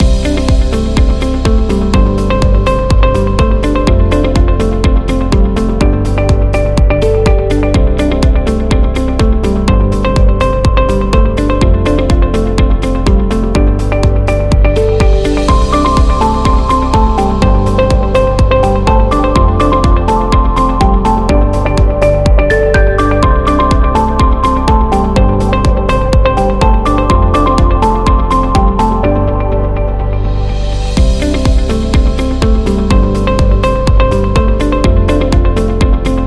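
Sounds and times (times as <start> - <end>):
music loop: 0.0 - 36.2.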